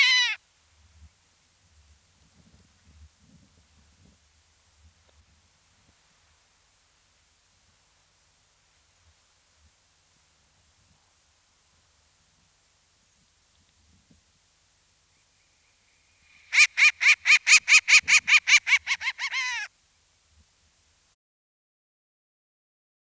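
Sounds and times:
Short-eared Owl calling: 0.0s - 0.4s, 16.3s - 19.7s.

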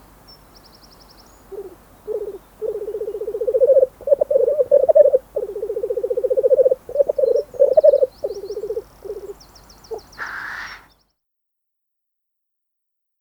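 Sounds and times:
black grouse calling: 1.4s - 10.9s.

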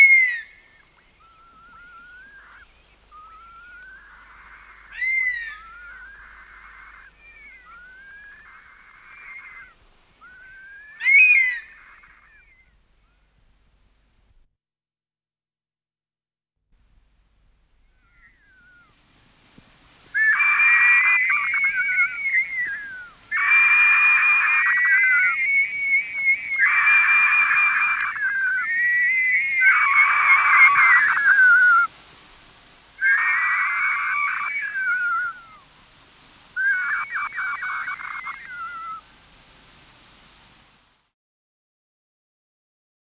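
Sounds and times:
honey buzzard call: 0.0s - 12.6s, 20.1s - 31.9s, 33.0s - 40.4s.

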